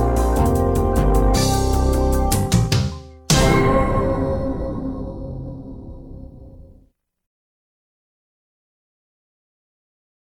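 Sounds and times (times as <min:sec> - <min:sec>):
background music mix bed: 0:00.0 - 0:06.9.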